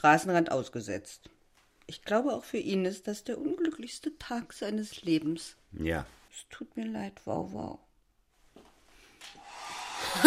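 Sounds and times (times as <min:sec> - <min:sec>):
speech: 0:00.0 - 0:07.8
faulty hair dryer running: 0:09.4 - 0:10.2.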